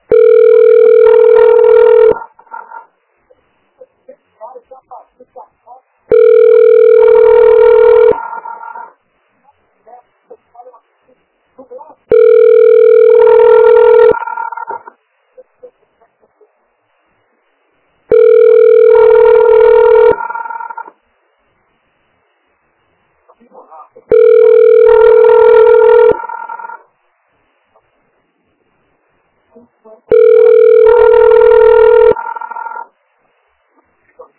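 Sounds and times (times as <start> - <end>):
telephone ringback tone waiting for a health clinic's line: 0.1 - 2.3, 6.1 - 8.6, 12.1 - 14.8, 18.1 - 20.9, 24.1 - 26.8, 30.1 - 32.9.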